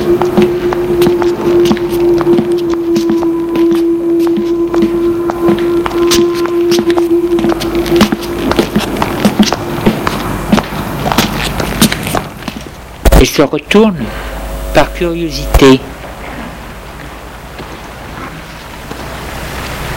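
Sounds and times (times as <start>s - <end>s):
steady low droning tone: 0.0s - 10.6s, 13.1s - 17.5s
footsteps walking behind a woman: 0.0s - 12.9s
speech: 13.4s - 15.9s.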